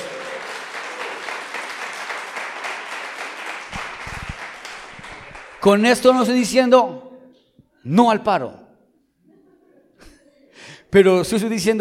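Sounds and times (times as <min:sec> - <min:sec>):
crowd applause: 0:00.0 - 0:05.8
speech: 0:05.6 - 0:07.0, 0:07.8 - 0:08.6, 0:10.9 - 0:11.7.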